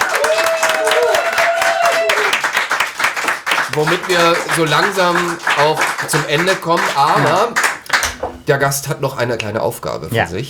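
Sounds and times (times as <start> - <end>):
audience applause for the guest: 0.0 - 8.4
speech: 3.8 - 7.6, 8.5 - 10.4.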